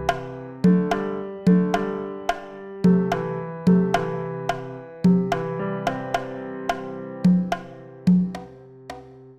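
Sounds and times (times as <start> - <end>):
loopable forest-themed music: 0.0 - 9.3.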